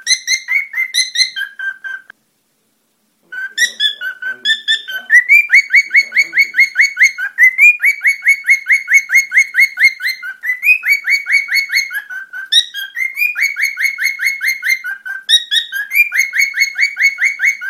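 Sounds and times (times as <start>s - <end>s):
cockatiel warbling song: 0.0s - 2.1s, 3.2s - 17.6s.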